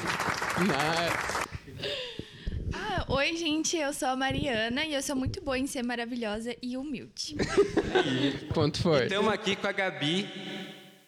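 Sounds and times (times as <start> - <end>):
audience clapping: 0.0 - 1.7
speech: 0.6 - 1.4, 3.2 - 10.4
laughter: 7.4 - 9.3.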